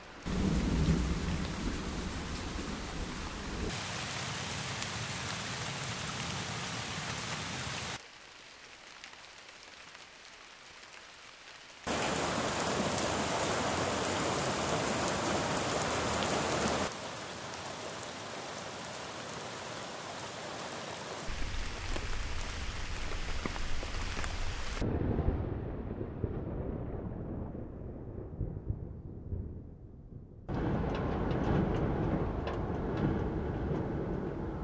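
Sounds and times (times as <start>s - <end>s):
rain: 0.0s - 29.5s, 30.5s - 34.6s
wind: 0.0s - 29.8s, 30.5s - 34.6s.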